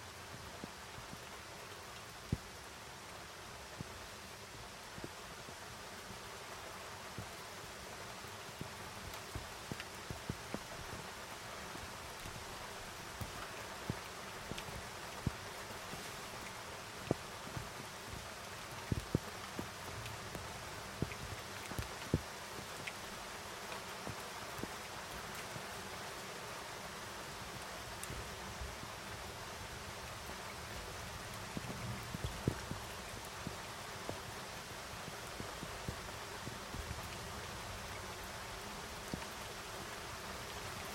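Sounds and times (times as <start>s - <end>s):
rain falling during a mountain storm: 0.0s - 40.9s.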